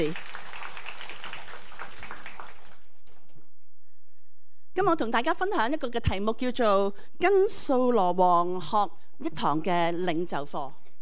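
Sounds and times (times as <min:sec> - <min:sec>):
speech: 0:00.0 - 0:00.3, 0:04.8 - 0:10.8
audience applause: 0:00.0 - 0:03.0.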